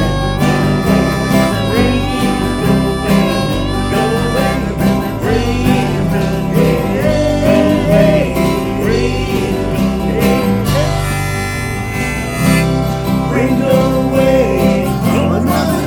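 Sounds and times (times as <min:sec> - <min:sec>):
guitar: 0:00.0 - 0:15.8
harmonica: 0:00.0 - 0:15.8.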